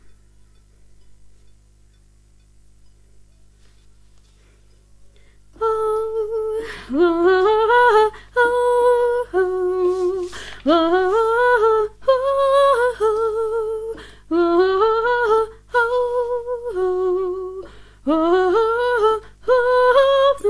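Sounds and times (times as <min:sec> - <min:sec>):
soprano voice: 0:05.6 - 0:20.4.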